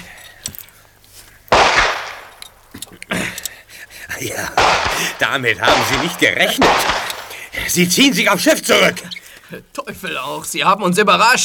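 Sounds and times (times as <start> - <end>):
gunfire: 1.5 - 2.4, 4.5 - 7.5
speech: 4.2 - 7.0, 7.6 - 11.4.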